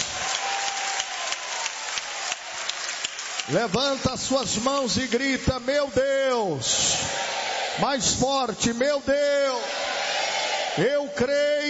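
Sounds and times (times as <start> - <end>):
audience applauding: 0.0 - 5.4
speech: 3.5 - 9.8, 10.8 - 11.6.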